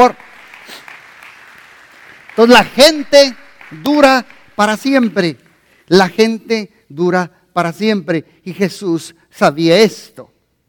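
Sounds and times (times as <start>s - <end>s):
speech: 0.0s - 0.8s, 2.4s - 10.3s
audience applause: 0.0s - 5.1s.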